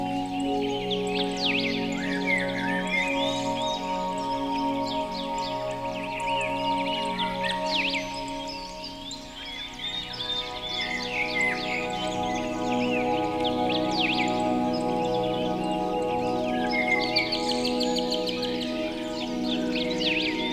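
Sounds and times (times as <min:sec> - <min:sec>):
natural birdsong: 0:00.0 - 0:20.5
relaxing music: 0:00.0 - 0:20.5.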